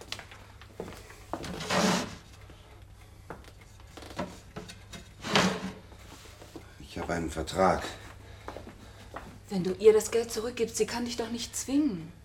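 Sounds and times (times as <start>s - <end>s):
wooden sock drawer opening and closing: 1.4s - 2.2s, 4.1s - 5.8s
speech: 7.0s - 8.0s, 9.5s - 12.2s.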